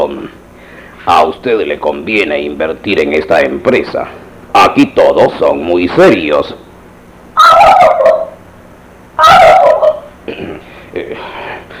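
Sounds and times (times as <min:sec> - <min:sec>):
speech: 0:00.0 - 0:00.4, 0:01.0 - 0:06.6
turkey gobbling: 0:07.4 - 0:08.4, 0:09.2 - 0:10.1.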